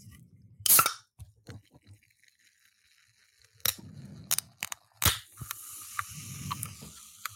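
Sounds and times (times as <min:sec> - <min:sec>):
can of sparkling water popping open: 0:00.7 - 0:01.7, 0:03.6 - 0:07.3
sparkling water fizzing hiss: 0:05.4 - 0:07.3.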